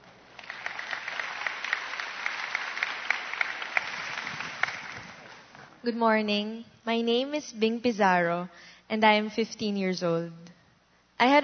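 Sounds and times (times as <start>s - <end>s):
audience applause welcoming a young woman: 0.3s - 5.5s
speech: 5.8s - 10.4s, 11.2s - 11.4s.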